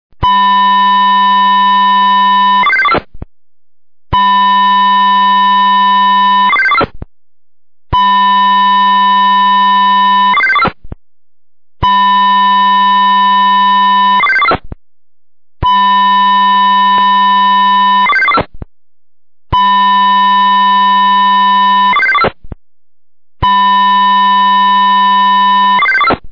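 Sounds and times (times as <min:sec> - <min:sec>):
signal sound: 0:00.2 - 0:03.0, 0:04.2 - 0:06.9, 0:08.0 - 0:10.8, 0:11.8 - 0:14.6, 0:15.6 - 0:18.5, 0:19.5 - 0:22.4, 0:23.4 - 0:26.2.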